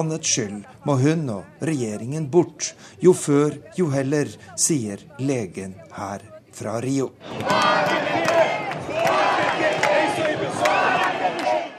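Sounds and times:
speech: 0.0 - 8.3
demonstrators chanting loudly in unison: 7.2 - 11.7
demonstrators shouting: 7.2 - 11.7.

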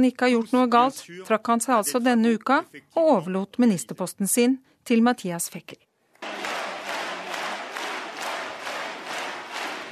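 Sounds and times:
speech: 0.0 - 5.9
large crowd standing ovation applause: 6.2 - 9.9.

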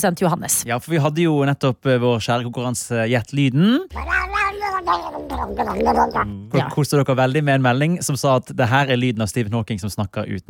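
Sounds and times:
speech: 0.0 - 10.4
cat yowling while sitting in a lap being petted: 3.9 - 6.3.

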